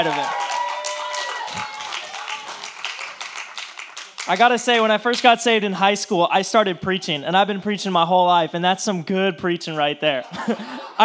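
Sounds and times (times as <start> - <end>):
speech: 0.0 - 0.4, 4.3 - 11.0
audience clapping: 0.0 - 5.4
laughter: 9.8 - 11.0.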